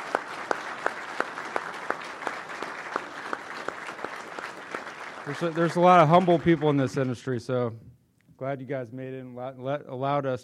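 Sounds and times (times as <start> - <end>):
audience applause at a towing-industry awards event: 0.0 - 7.4
sharp louder claps: 0.0 - 7.4
speech: 5.3 - 10.4.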